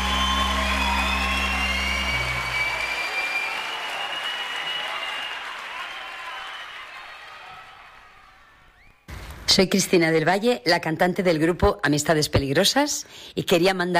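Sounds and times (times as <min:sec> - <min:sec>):
applause: 0:00.0 - 0:08.8
speech: 0:09.6 - 0:13.9.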